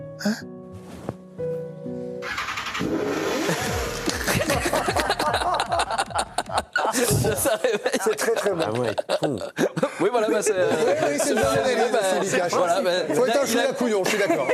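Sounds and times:
speech: 0:00.2 - 0:02.0, 0:06.5 - 0:14.5
motorcycle engine revving: 0:02.2 - 0:04.3
laughter: 0:03.4 - 0:14.5.

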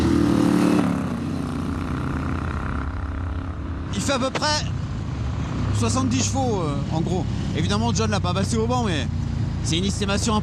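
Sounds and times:
Moto Guzzi motorcycle engine droning while riding: 0:00.0 - 0:04.6
speech: 0:04.1 - 0:04.8, 0:05.8 - 0:10.4.

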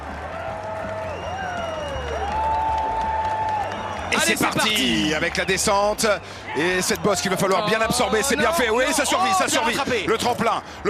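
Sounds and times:
Swedish spectators cheering at a ski jump event: 0:00.0 - 0:09.9
speech: 0:04.2 - 0:10.8.

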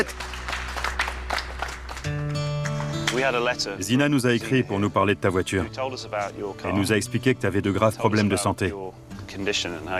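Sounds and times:
speech: 0:00.0 - 0:00.2, 0:03.2 - 0:09.9
audience applauding: 0:00.0 - 0:03.5.

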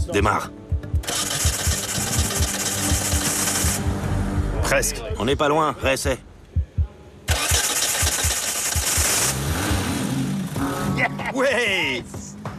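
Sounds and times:
speech: 0:00.1 - 0:00.6, 0:04.7 - 0:06.3, 0:11.4 - 0:12.2
1400 cc car engine starting: 0:01.0 - 0:04.3, 0:07.3 - 0:11.0.

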